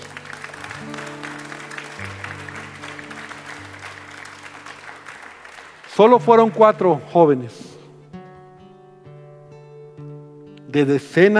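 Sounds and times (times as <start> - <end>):
audience applauding loudly: 0.0 - 6.9
speech: 6.0 - 7.7, 10.8 - 11.3.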